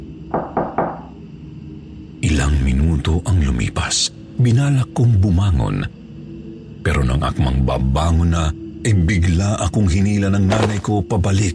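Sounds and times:
knocks on a door: 0.3s - 1.2s
speech: 3.0s - 6.0s, 6.8s - 11.5s.

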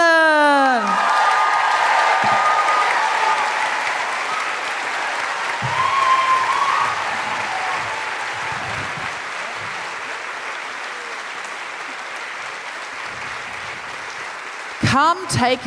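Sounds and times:
high whoops from a Christchurch audience: 0.0s - 11.3s
Christchurch audience clapping at a live feminist comedy event: 0.0s - 15.6s
speech: 15.0s - 15.6s.

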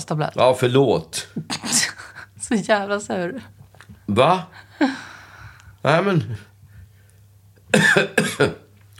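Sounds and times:
speech: 0.0s - 1.8s, 2.5s - 5.1s, 5.8s - 6.5s, 7.7s - 8.6s
harsh hoarse coughing from someone with a heavy cold: 7.7s - 8.7s.

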